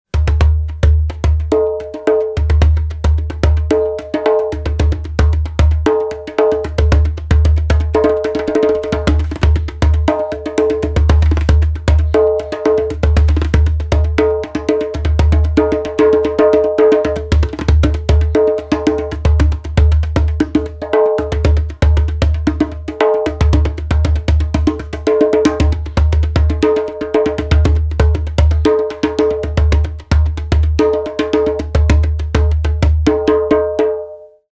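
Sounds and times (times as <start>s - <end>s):
djembe drumming: 0.1s - 34.2s.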